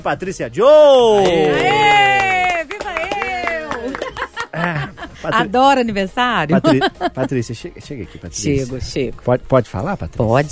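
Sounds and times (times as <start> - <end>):
speech: 0.0 - 2.1, 5.2 - 10.5
round of applause: 1.1 - 4.7
laughter: 3.4 - 5.5, 6.5 - 7.5.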